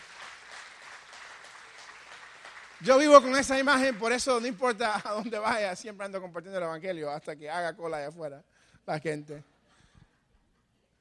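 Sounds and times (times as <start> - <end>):
church congregation clapping: 0.0 - 6.0
speech: 2.8 - 9.5.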